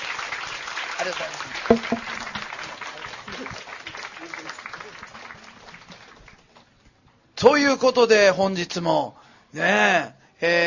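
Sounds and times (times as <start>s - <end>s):
audience applause: 0.0s - 6.4s
speech: 1.0s - 2.2s, 7.4s - 10.6s.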